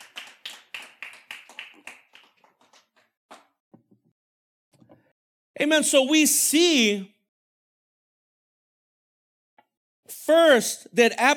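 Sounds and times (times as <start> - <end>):
audience applause: 0.0 - 3.1
speech: 5.6 - 7.1, 10.3 - 11.3.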